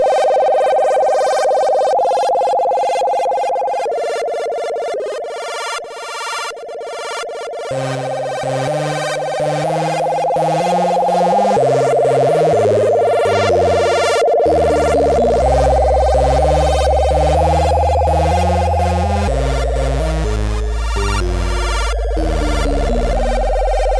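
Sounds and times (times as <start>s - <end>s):
synthesizer: 0.0s - 23.9s.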